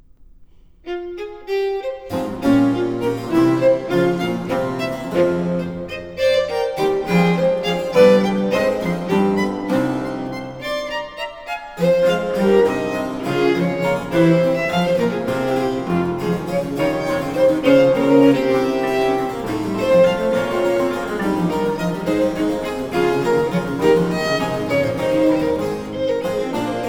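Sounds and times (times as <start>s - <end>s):
violin sonata: 0.8s - 26.8s.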